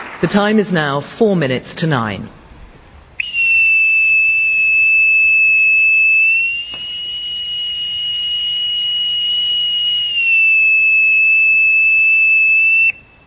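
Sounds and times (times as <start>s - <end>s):
speech: 0.2s - 2.4s
bosun's call piping the side at Faslane submarine base in Scotland: 3.2s - 13.2s.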